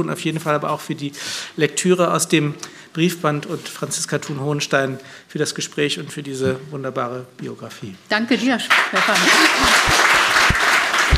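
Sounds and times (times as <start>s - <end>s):
speech: 0.0s - 10.0s
audience applause: 8.7s - 11.1s.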